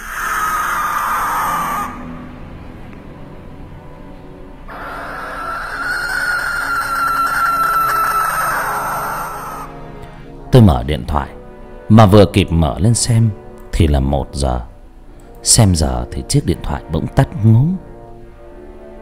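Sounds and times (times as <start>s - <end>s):
barn owl shrieking: 0.0s - 2.4s, 4.7s - 9.8s
speech: 10.6s - 14.7s, 15.4s - 17.9s.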